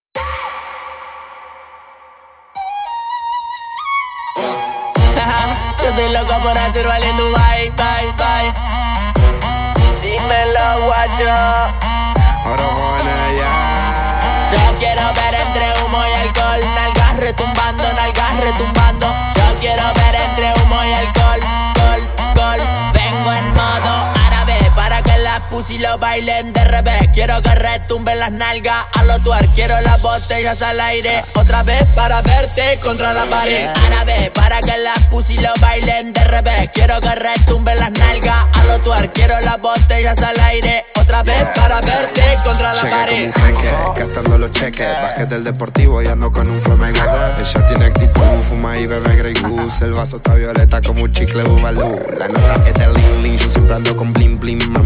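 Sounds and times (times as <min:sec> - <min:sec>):
music: 0:00.2 - 0:54.8.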